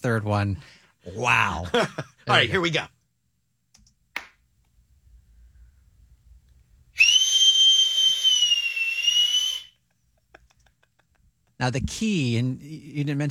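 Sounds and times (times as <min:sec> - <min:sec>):
speech: 0:00.0 - 0:03.0, 0:11.6 - 0:13.2
sharp hand clap signal: 0:04.2 - 0:04.4
loud steady high-pitched whistle: 0:07.0 - 0:09.8.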